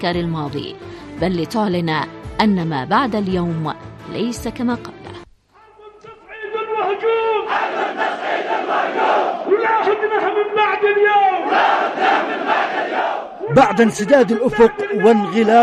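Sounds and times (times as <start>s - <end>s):
speech: 0.0s - 5.0s, 13.8s - 15.6s
huge crowd chanting in unison: 6.6s - 10.6s, 11.3s - 15.6s.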